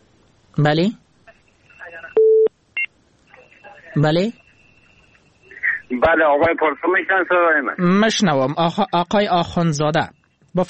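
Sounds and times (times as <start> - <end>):
speech: 0.6 - 1.0, 4.0 - 4.4, 5.9 - 10.6
telephone tones as a caller is connected on a call-in program: 1.8 - 3.7.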